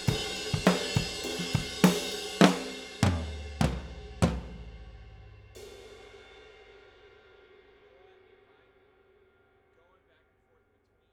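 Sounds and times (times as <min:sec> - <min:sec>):
cymbal: 0:00.0 - 0:09.8.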